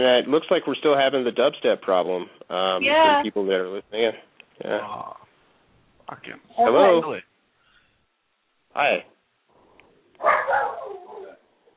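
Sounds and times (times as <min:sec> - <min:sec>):
speech: 0:00.0 - 0:05.2, 0:06.1 - 0:07.3, 0:08.8 - 0:09.1
dogs barking: 0:10.2 - 0:11.5.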